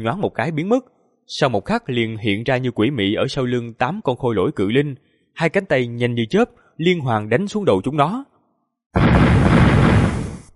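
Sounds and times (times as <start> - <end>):
speech: 0.0 - 8.3, 8.9 - 9.6
dull explosive boom: 9.0 - 10.5.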